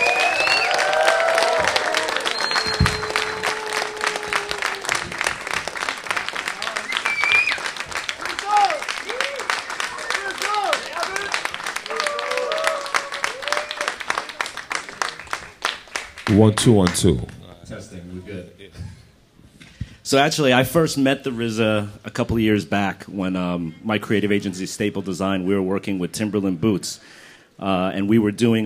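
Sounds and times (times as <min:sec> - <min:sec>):
audience applause and cheering for a performer: 0:00.0 - 0:17.4
speech: 0:16.4 - 0:17.4, 0:20.1 - 0:28.6.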